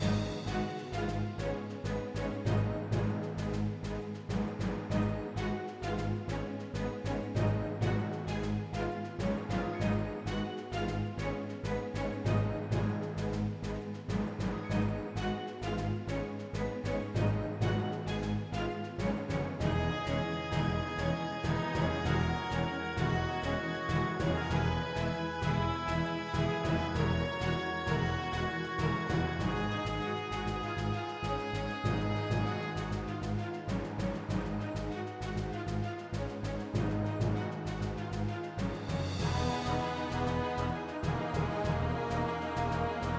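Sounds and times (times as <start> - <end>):
battle music: 0.0 - 43.1.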